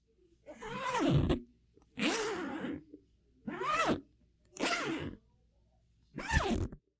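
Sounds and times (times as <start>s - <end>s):
zipper: 0.6s - 1.4s, 2.0s - 2.8s, 3.5s - 4.0s, 4.6s - 5.2s, 6.2s - 6.8s.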